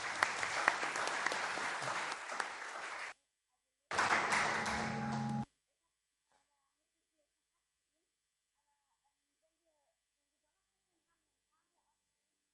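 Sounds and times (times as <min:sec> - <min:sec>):
audience applause: 0:00.0 - 0:03.1, 0:03.9 - 0:05.4.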